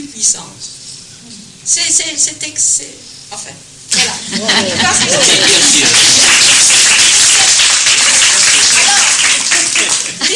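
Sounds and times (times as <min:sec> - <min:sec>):
speech: 0:00.1 - 0:06.7
laughter: 0:04.0 - 0:07.4
audience applauding: 0:04.7 - 0:10.3.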